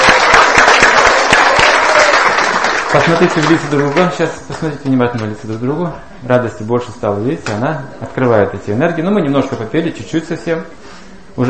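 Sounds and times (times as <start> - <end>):
group clapping: 0.0 - 5.0
speech: 2.9 - 10.8.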